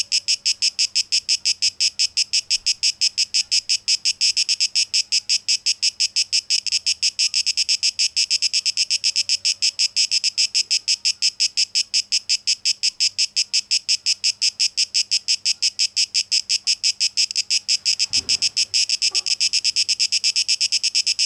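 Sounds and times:
shrill cicada song: 0.0s - 21.2s
low thump: 17.8s - 18.8s.

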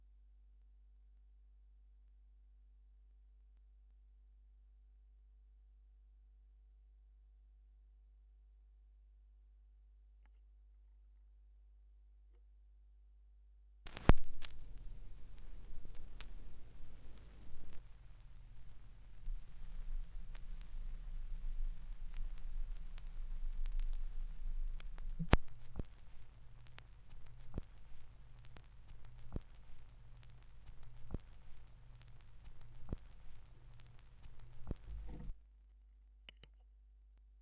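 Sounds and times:
vinyl record noise: 13.9s - 35.4s.

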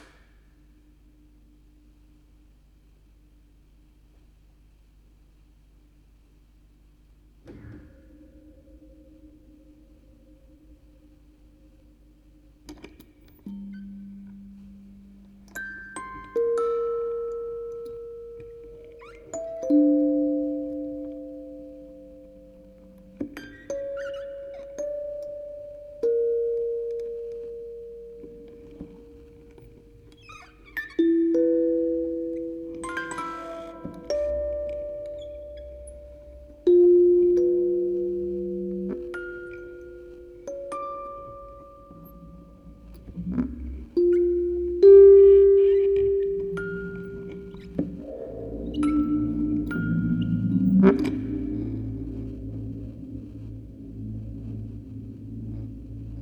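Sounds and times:
quartet of music boxes playing: 12.7s - 56.1s.

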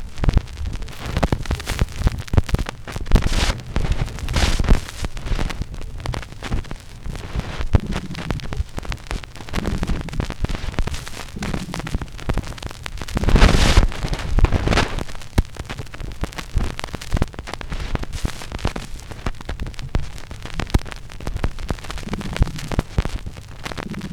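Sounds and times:
vinyl record noise mix played backwards: 0.0s - 24.1s.

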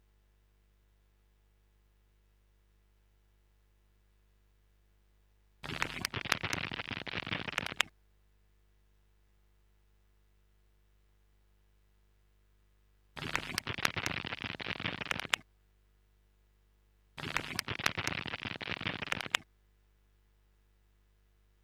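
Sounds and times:
stereo instrument crackling loop: 5.6s - 7.9s, 13.2s - 15.4s, 17.2s - 19.4s.

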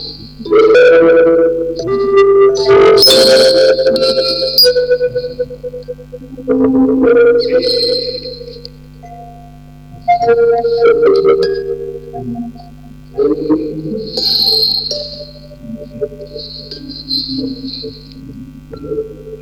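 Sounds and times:
double mono vocoder recording: 0.0s - 19.4s
tape machine: 0.0s - 19.4s
quartet of music boxes playing: 0.9s - 6.0s, 10.1s - 18.1s.

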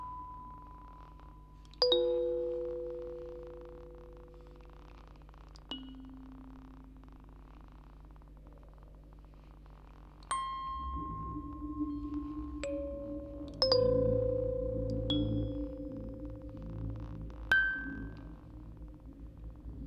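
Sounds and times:
quartet of music boxes playing: 1.8s - 3.8s, 10.3s - 19.0s.

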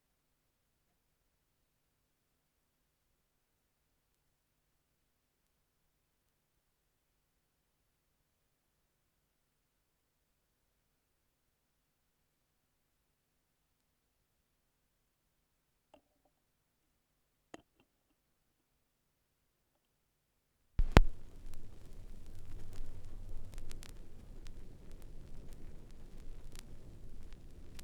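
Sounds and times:
vinyl record noise: 20.8s - 27.8s.

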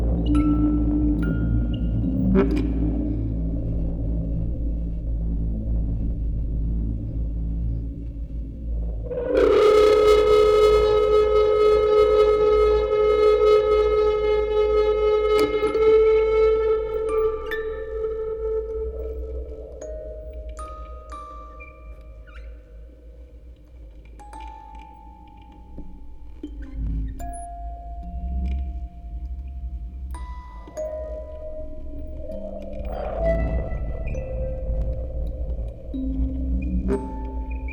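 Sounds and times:
field recording ambience: 0.0s - 37.7s
music box quartet: 16.9s - 37.7s.

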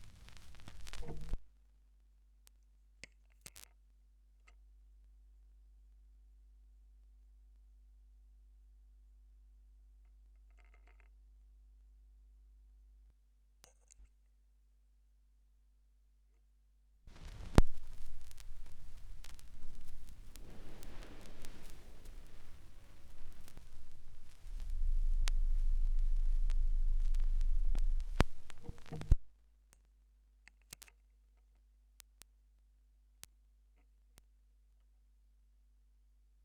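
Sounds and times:
vinyl record noise: 0.0s - 1.5s, 17.1s - 29.4s.

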